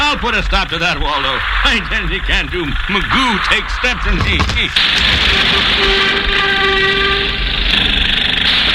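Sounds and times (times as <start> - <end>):
demolition of the building next door, heavy machinery rumbling: 0.0 - 8.7
speech: 0.2 - 7.2
sustained whining tone: 0.7 - 8.2.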